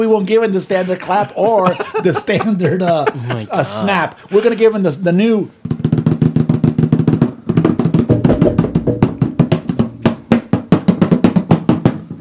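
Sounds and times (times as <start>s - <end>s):
speech: 0.0s - 5.6s
laughter: 0.7s - 4.8s
rapid hand drumming on a coffee can: 5.6s - 12.1s.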